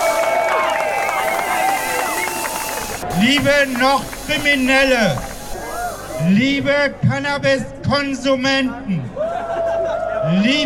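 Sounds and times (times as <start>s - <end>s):
crowd applause at a demonstration: 0.0s - 6.1s
speech: 3.2s - 5.3s, 6.2s - 9.2s, 10.3s - 10.6s.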